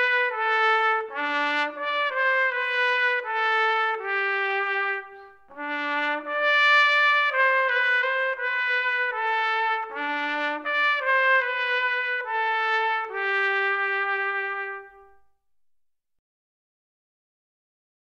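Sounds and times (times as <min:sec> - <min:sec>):
trumpet: 0:00.0 - 0:15.4.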